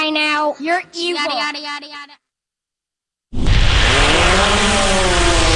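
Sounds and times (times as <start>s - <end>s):
speech: 0.1s - 2.0s
small military reconnaissance drone buzzing: 3.8s - 5.5s.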